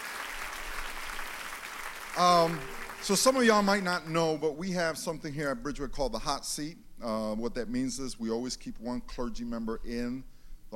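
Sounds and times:
congregation applauding a pastor in a church service: 0:00.0 - 0:04.2
speech: 0:02.2 - 0:10.7.

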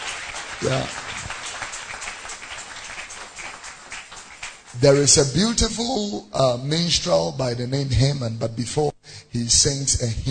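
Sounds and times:
audience clapping: 0:00.0 - 0:05.4
speech: 0:00.6 - 0:01.1, 0:04.8 - 0:10.3.

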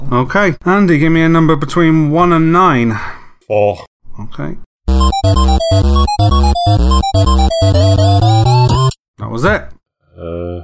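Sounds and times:
speech: 0:00.1 - 0:04.6, 0:05.2 - 0:08.4, 0:09.2 - 0:10.6
retro arcade video game theme in chiptune tones: 0:04.9 - 0:09.0.

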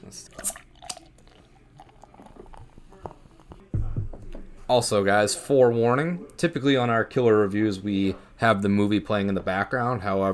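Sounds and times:
bottle of pumpkin-flavoured drink handled and opened: 0:00.3 - 0:01.1
speech: 0:04.7 - 0:10.3.

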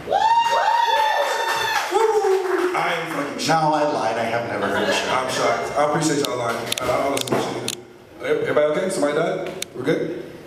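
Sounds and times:
audience cheering and whooping: 0:00.0 - 0:02.8
speech: 0:03.4 - 0:07.7, 0:08.3 - 0:10.2.

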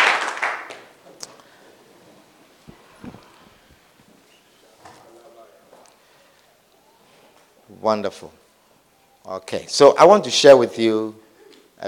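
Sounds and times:
audience clapping: 0:00.0 - 0:01.0
speech: 0:07.8 - 0:08.4, 0:09.3 - 0:11.2.

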